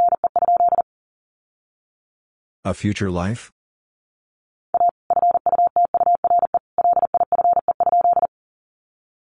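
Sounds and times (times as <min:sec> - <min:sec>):
Morse code beeps at 40wpm: 0:00.0 - 0:00.8, 0:04.8 - 0:08.3.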